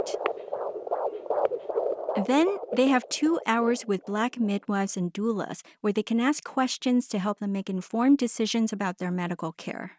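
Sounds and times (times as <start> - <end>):
unborn baby's heartbeat being measured: 0.0 - 4.7
speech: 2.2 - 9.9.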